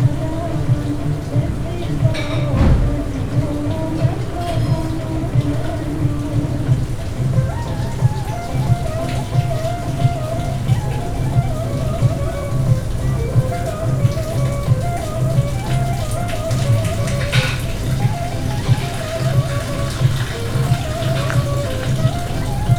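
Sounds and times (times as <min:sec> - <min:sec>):
Arabic music from a bazaar: 0:00.0 - 0:22.7.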